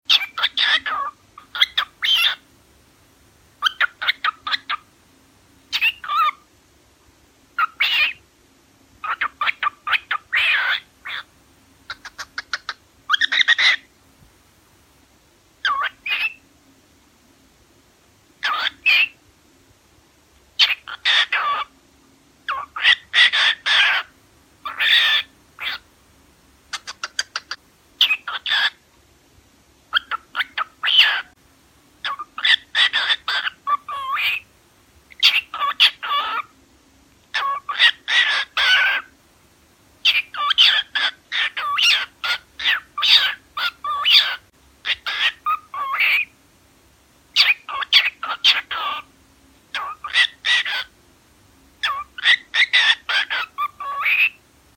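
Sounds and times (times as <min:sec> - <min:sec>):
cockatiel: 0:00.1 - 0:02.5, 0:03.6 - 0:04.9, 0:05.7 - 0:06.5, 0:07.6 - 0:08.3, 0:09.0 - 0:11.3, 0:11.9 - 0:13.9, 0:15.6 - 0:16.5, 0:18.4 - 0:19.2, 0:20.6 - 0:21.8, 0:22.4 - 0:25.9, 0:26.7 - 0:28.9, 0:29.9 - 0:31.4, 0:32.0 - 0:34.5, 0:35.1 - 0:36.6, 0:37.2 - 0:39.2, 0:40.0 - 0:46.4, 0:47.3 - 0:51.0, 0:51.8 - 0:54.4.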